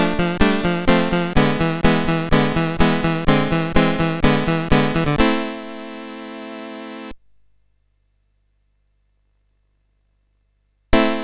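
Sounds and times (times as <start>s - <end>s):
piano piece on a sid chip: 0.0s - 5.3s.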